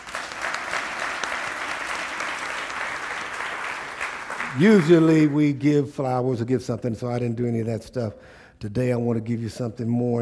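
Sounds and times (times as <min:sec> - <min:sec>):
audience hand clapping: 0:00.0 - 0:05.6
speech: 0:04.6 - 0:10.2.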